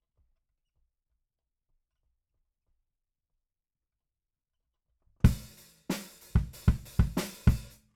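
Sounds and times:
bass drum: 5.3s - 7.7s.

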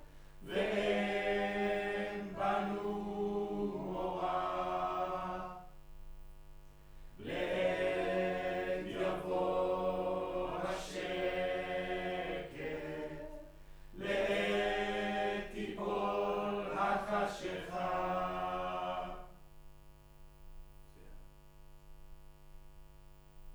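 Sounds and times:
choir singing in room: 0.4s - 5.8s, 7.2s - 19.4s.

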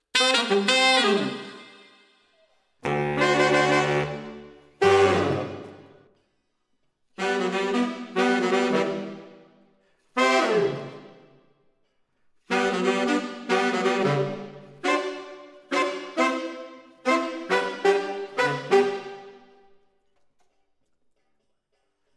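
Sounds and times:
saxophones: 0.0s - 2.1s, 2.8s - 6.0s, 7.2s - 9.4s, 10.2s - 11.2s, 12.5s - 19.5s.

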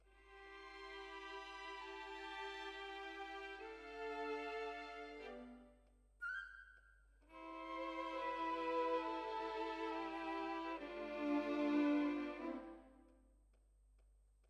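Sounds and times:
violins: 0.0s - 5.8s, 7.3s - 13.0s.

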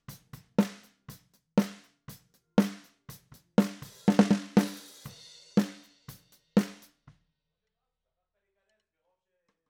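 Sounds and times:
snare drum top hit: 0.6s - 0.9s, 3.6s - 5.9s, 6.6s - 6.9s.

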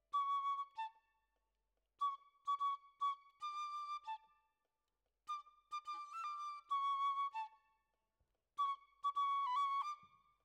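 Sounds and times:
flute: 0.0s - 1.4s, 2.0s - 8.0s, 8.6s - 10.4s.

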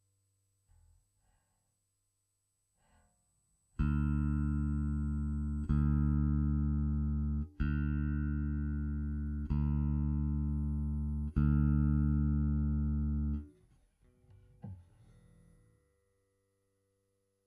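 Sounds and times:
bass: 3.7s - 15.8s.

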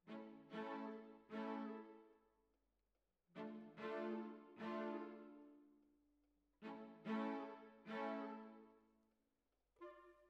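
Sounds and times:
cellos playing: 0.0s - 2.0s, 3.4s - 5.5s, 6.6s - 8.6s.

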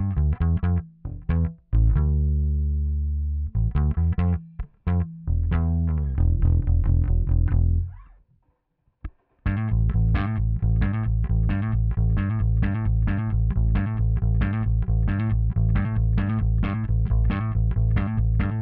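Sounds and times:
bass amplifier sound: 0.0s - 8.2s, 9.0s - 18.6s.

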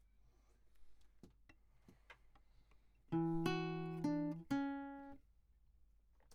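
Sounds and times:
classical guitar: 3.1s - 5.2s.

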